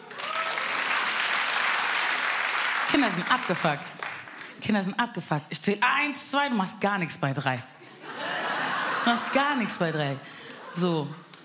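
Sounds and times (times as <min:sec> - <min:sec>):
audience applause: 0:00.0 - 0:04.4
speech: 0:02.9 - 0:04.0, 0:04.6 - 0:07.8, 0:09.1 - 0:11.2
laughter: 0:07.8 - 0:11.2.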